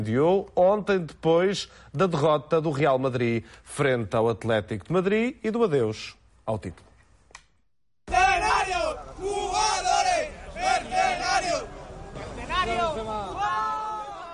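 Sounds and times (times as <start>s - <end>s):
speech: 0.0s - 6.9s
football fans shouting after a derby defeat: 8.1s - 14.3s.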